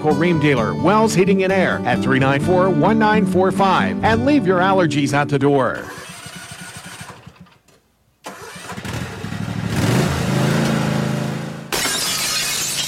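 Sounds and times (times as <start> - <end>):
speech: 0.0 - 6.0
lawnmower engine sputtering and revving: 5.8 - 7.5, 8.3 - 11.5
car side window shattering: 11.7 - 12.8.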